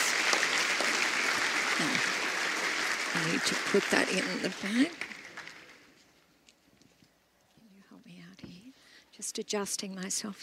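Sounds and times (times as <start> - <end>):
audience applause: 0.0 - 5.9
speech: 1.8 - 2.2, 3.1 - 5.1, 9.4 - 10.4.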